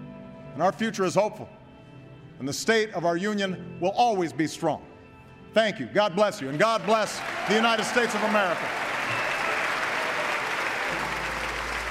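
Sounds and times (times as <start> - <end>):
speech: 0.6 - 1.6, 2.4 - 4.9, 5.5 - 9.2
congressional chamber applause after speech: 6.4 - 11.8.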